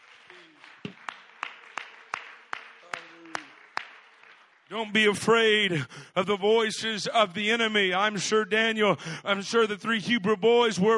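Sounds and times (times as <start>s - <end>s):
audience clapping hands: 0.0s - 5.8s
speech: 4.7s - 10.9s.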